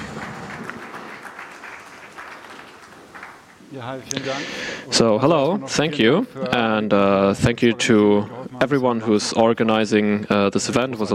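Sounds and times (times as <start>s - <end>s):
audience applause: 0.0s - 3.9s
speech: 3.7s - 11.1s.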